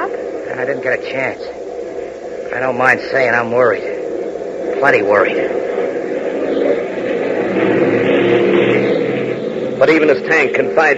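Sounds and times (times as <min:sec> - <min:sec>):
primary trainer airplane engine roaring: 0:00.0 - 0:10.9
speech: 0:00.6 - 0:01.6, 0:02.5 - 0:03.9, 0:04.7 - 0:05.8, 0:09.8 - 0:10.9.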